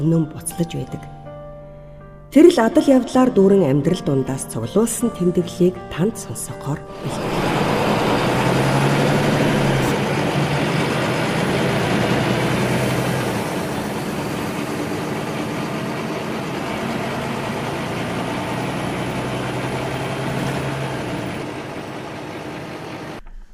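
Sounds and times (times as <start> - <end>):
speech: 0.0 - 1.2, 2.3 - 7.6
city bus engine rumbling in the capital: 6.9 - 23.2
traffic in the capital: 7.0 - 23.2.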